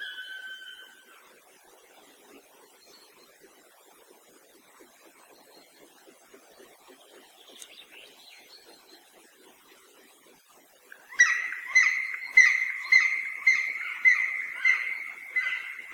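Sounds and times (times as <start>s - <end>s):
black woodpecker call: 0.0s - 1.0s, 11.1s - 15.9s.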